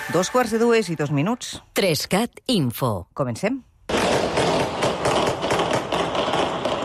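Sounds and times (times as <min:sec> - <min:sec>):
speech: 0:00.2 - 0:04.1
gunshots at night in a city: 0:03.9 - 0:06.8.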